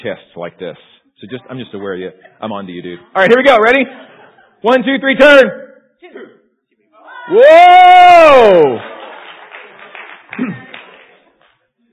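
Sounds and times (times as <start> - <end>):
speech: 0.0 - 6.4, 7.3 - 8.9, 10.4 - 10.6
laughter: 3.7 - 4.7, 10.3 - 11.2
audience applause: 8.0 - 11.6.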